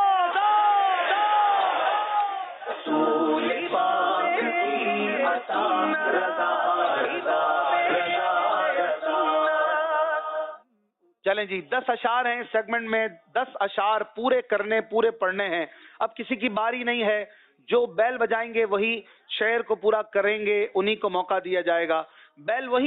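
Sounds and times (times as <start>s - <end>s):
audience chanting in response to slogan: 0.2s - 10.6s
speech: 11.3s - 22.8s.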